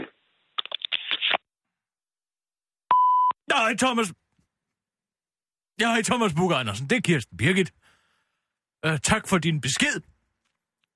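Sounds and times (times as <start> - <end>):
voicemail beep tone: 2.9 - 3.4
speech: 3.6 - 4.2, 5.8 - 7.8, 8.8 - 10.1.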